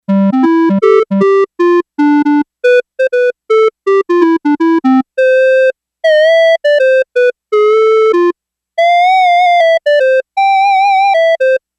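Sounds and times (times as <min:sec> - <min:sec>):
clarinet: 0:00.0 - 0:11.6.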